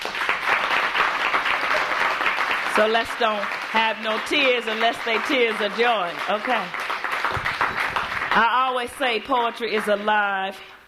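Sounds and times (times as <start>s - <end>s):
audience applause: 0.0s - 8.6s
speech: 2.8s - 6.8s, 8.4s - 10.7s.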